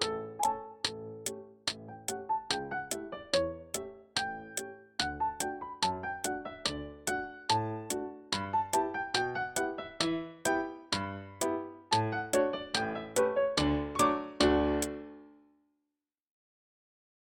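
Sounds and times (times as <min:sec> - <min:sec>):
metronome clicks: 0:00.0 - 0:15.0
gavotte played at full tempo: 0:11.5 - 0:15.2.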